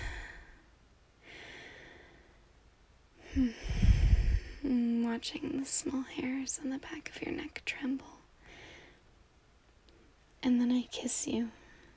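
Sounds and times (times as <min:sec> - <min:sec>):
slow deep breathing: 0:00.0 - 0:02.5, 0:03.2 - 0:04.8, 0:08.4 - 0:09.1
speech: 0:03.4 - 0:03.8, 0:05.1 - 0:08.2, 0:10.4 - 0:11.6.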